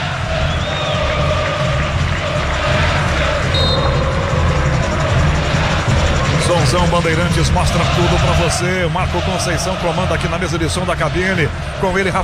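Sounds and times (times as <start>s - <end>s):
football stadium crowd roaring and cheering: 0.0s - 12.2s
thin whistle-like tones: 0.4s - 1.4s, 3.4s - 5.0s
speech: 6.7s - 12.2s.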